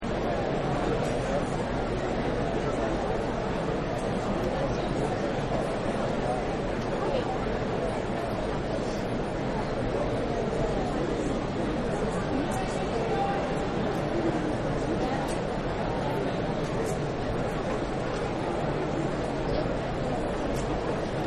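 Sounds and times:
arena crowd: 0:00.0 - 0:21.2.

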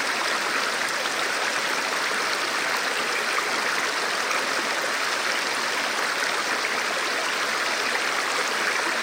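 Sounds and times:
river stream flowing: 0:00.0 - 0:09.0.

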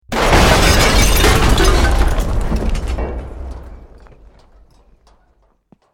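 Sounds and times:
large explosion of brick, wood, glass and metal: 0:00.0 - 0:04.2.

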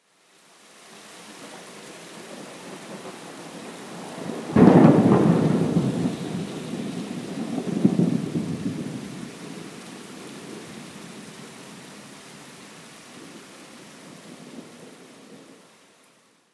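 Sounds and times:
rain: 0:00.0 - 0:16.5
thunder crash: 0:04.4 - 0:09.1.

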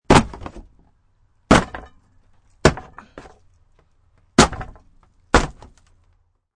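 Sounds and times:
piece of wood being bashed: 0:00.0 - 0:00.8, 0:01.4 - 0:02.0, 0:02.6 - 0:03.4, 0:04.3 - 0:05.9.

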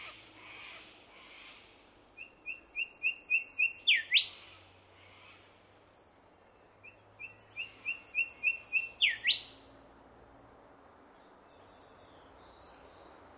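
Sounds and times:
Australian bird of unidentified species giving whistled notes: 0:02.5 - 0:04.4, 0:07.2 - 0:09.6.

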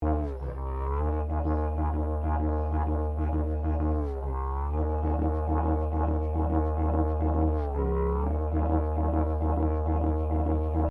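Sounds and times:
plastic telescopic didgeridoo slide drone loop: 0:00.0 - 0:10.9.

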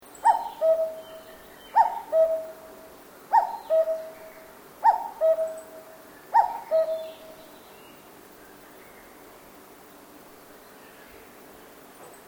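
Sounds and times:
cuckoo calling in a forest in Japan: 0:00.1 - 0:07.5.

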